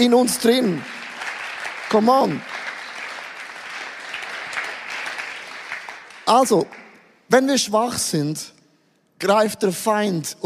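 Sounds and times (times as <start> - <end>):
speech: 0.0 - 1.0, 1.9 - 2.6, 6.3 - 8.6, 9.2 - 10.4
crowd applauding: 0.0 - 7.0.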